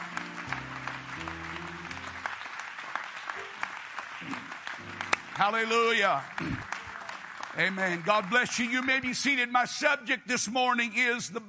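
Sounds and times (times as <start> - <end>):
organ-like chords: 0.0 - 2.6, 4.7 - 8.2
crowd clapping: 0.0 - 9.8
speech: 5.4 - 6.7, 7.6 - 11.4.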